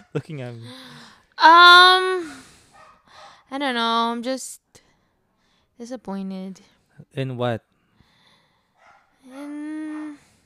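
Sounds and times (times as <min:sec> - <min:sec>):
speech: 0:00.1 - 0:02.5, 0:03.5 - 0:04.6, 0:05.8 - 0:07.7, 0:09.3 - 0:09.7
dog barking: 0:02.8 - 0:03.4, 0:08.8 - 0:10.2.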